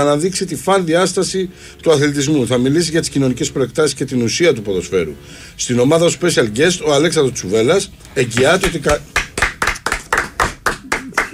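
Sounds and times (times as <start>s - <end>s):
speech: 0.0s - 9.2s
hand clapping: 8.3s - 11.3s.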